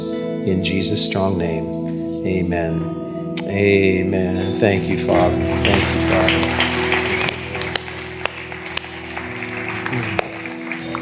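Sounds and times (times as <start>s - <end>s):
keyboard chords: 0.0s - 11.0s
speech: 0.4s - 6.6s
audience clapping in rhythm: 4.4s - 11.0s
crowd noise: 4.8s - 11.0s.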